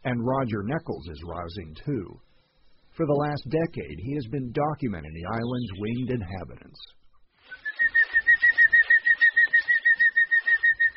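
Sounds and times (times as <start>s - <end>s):
speech: 0.0s - 2.3s, 3.0s - 7.0s
hummingbird buzzing past: 7.5s - 10.9s.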